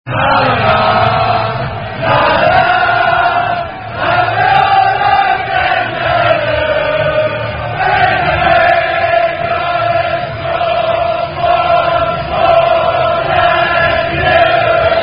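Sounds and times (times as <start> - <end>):
football crowd chanting: 0.1 - 15.0.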